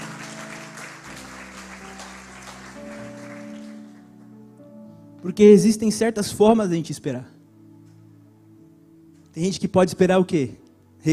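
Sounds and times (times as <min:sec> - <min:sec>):
audience applause: 0:00.0 - 0:04.3
speech: 0:05.2 - 0:07.4, 0:09.4 - 0:11.1.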